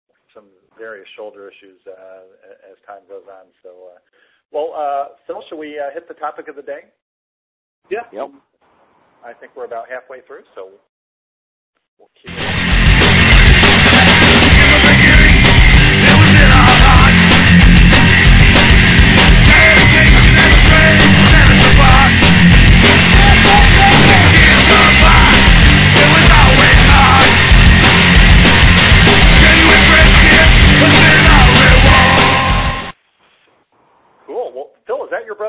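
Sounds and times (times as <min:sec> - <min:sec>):
speech: 0:00.4 - 0:07.0, 0:07.8 - 0:08.5, 0:09.2 - 0:10.9, 0:12.0 - 0:12.6
royalty-free background music: 0:12.3 - 0:33.0.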